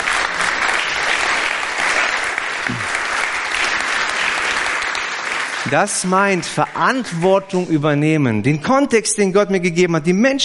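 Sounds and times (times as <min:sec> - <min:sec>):
audience applause: 0:00.0 - 0:07.6
speech: 0:05.7 - 0:10.4.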